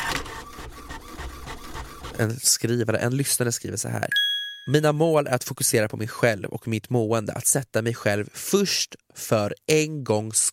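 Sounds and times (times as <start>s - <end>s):
printer whirring: 0.0s - 2.3s
speech: 2.2s - 10.5s.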